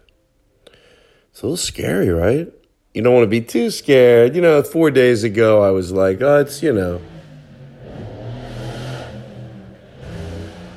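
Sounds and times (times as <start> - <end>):
speech: 1.4 - 7.1
car engine revving as it arrives outside a house: 5.5 - 10.7.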